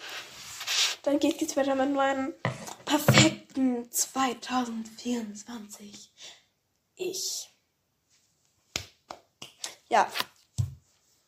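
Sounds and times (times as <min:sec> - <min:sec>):
speech: 0:01.0 - 0:06.4, 0:07.0 - 0:07.5, 0:09.9 - 0:10.3
clapping sounds: 0:08.7 - 0:09.8.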